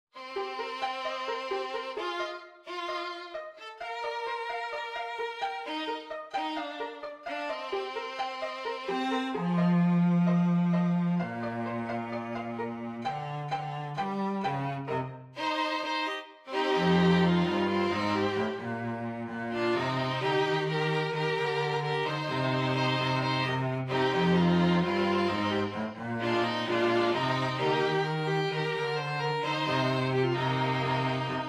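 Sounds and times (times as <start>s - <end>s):
string trio playing: 0.2s - 31.4s.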